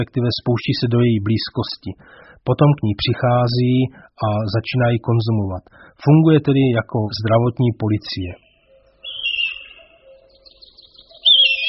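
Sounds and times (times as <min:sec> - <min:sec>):
speech: 0:00.0 - 0:08.4
red kite melodic whistling call: 0:09.0 - 0:10.4, 0:11.1 - 0:11.6.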